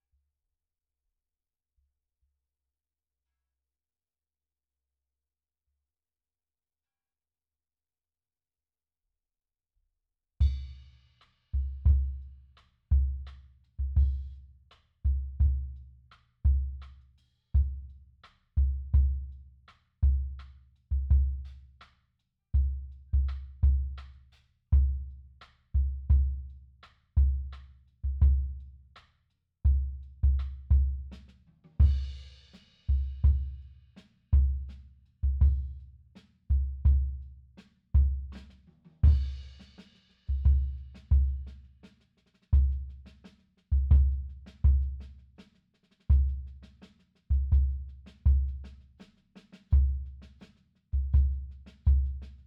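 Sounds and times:
bass drum: 10.4 - 10.9, 11.6 - 17.0, 17.6 - 18.0, 18.6 - 19.4, 20.0 - 21.6, 22.6 - 25.2, 25.8 - 26.6, 27.2 - 28.7, 29.7 - 33.7, 34.3 - 35.9, 36.5 - 37.3, 38.0 - 41.7, 42.5 - 45.4, 46.0 - 49.0, 49.6 - 52.4.

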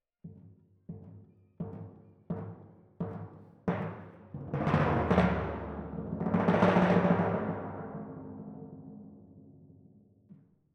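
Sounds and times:
timpani in F: 2.4 - 9.8.

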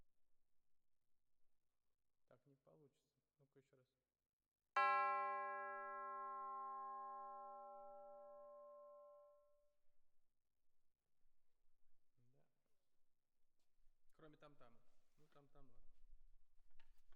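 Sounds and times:
percussion: 4.8 - 9.6.

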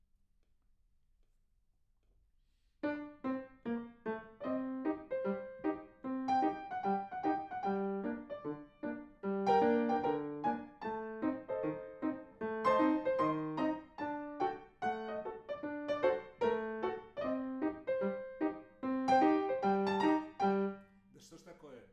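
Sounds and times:
piano: 2.8 - 20.9.

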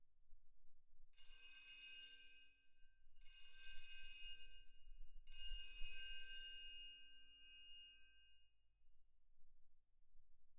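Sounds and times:
percussion: 1.2 - 8.2.

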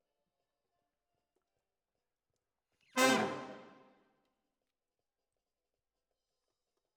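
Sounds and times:
saxophone: 3.0 - 3.8.

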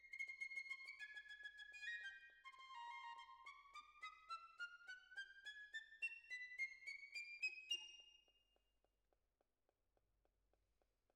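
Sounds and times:
clarinet: 0.3 - 7.9.

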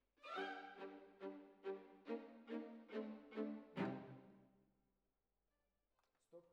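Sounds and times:
cellos playing: 0.2 - 4.4.

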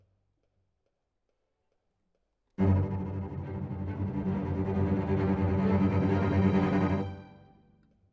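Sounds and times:
cello solo: 2.6 - 7.5.

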